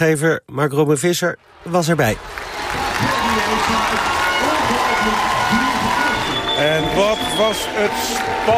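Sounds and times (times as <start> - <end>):
speech: 0.0 - 5.8, 6.6 - 8.5
packed indoor crowd clapping and cheering in full cinema: 1.4 - 8.5.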